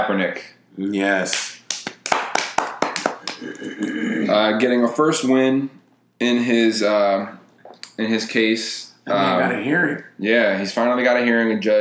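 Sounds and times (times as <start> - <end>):
speech: 0.0 - 1.6, 3.3 - 7.4, 8.0 - 11.7
round of applause: 1.3 - 3.4.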